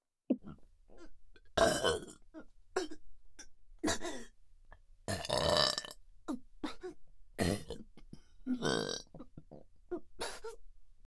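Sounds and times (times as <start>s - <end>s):
burping: 0.4s - 4.4s, 5.1s - 6.0s, 6.6s - 10.6s.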